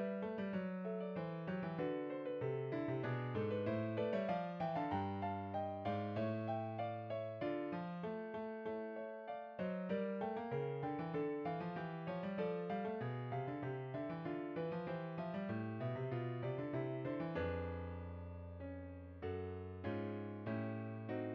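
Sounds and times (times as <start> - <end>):
fugue for piano: 0.0 - 21.3.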